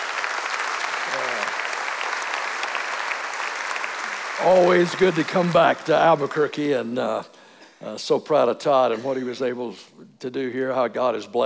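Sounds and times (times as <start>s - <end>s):
audience applause welcoming a speaker: 0.0s - 6.9s
speech: 4.4s - 11.4s.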